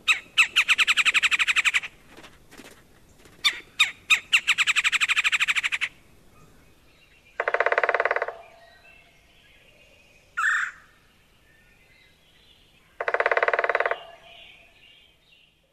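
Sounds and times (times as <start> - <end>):
Red-bellied Woodpecker rolling call: 0.0 - 6.6, 7.3 - 8.8, 10.4 - 10.9, 12.9 - 14.8.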